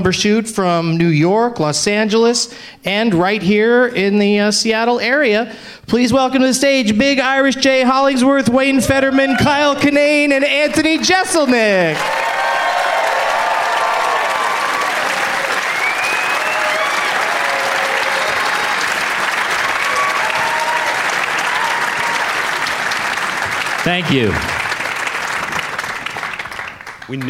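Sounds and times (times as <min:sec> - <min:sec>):
speech: 0:00.0 - 0:12.5, 0:23.9 - 0:24.6, 0:27.1 - 0:27.2
audience applause and cheering: 0:10.8 - 0:27.2.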